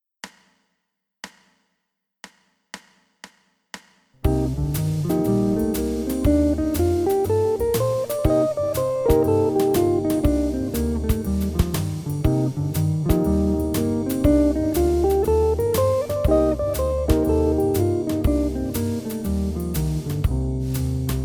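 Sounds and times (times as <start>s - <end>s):
guitar in Dorian mode: 4.3s - 21.1s.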